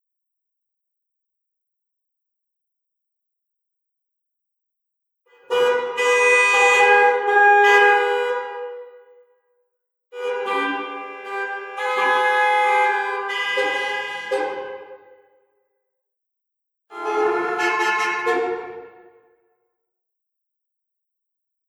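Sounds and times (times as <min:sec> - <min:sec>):
car horns in New York City: 0:05.4 - 0:09.2, 0:10.2 - 0:15.3, 0:16.9 - 0:19.3.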